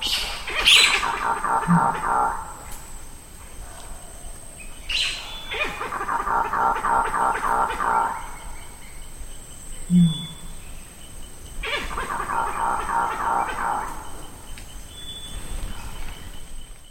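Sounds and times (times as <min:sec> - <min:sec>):
monkey call sequence reacting to falling tree: 0:00.0 - 0:09.3, 0:11.3 - 0:14.6.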